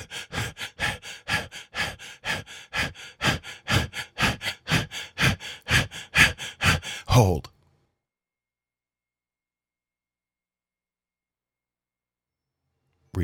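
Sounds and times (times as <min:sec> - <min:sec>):
rhythmic forceful breathing during a guided breathing exercise: 0:00.0 - 0:07.2
speech: 0:07.2 - 0:07.5.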